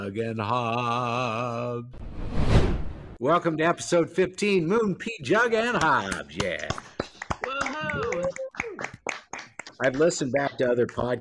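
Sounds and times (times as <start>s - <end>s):
speech: 0.0s - 6.9s, 9.8s - 11.1s
hosts clapping hands: 5.8s - 11.1s.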